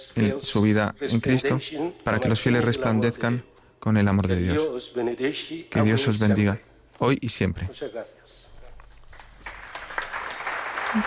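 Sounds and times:
speech: 0:00.1 - 0:08.5
audience applause: 0:09.4 - 0:11.0.

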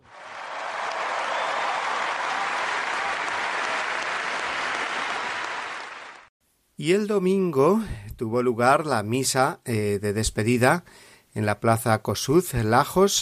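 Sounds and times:
long applause from large crowd: 0:00.0 - 0:06.3
speech: 0:06.8 - 0:13.2.

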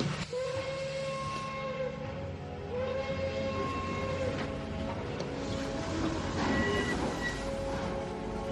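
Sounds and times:
train pulling away with rumble and clatter: 0:00.0 - 0:08.5
train whistle: 0:00.1 - 0:04.5, 0:05.8 - 0:08.0.

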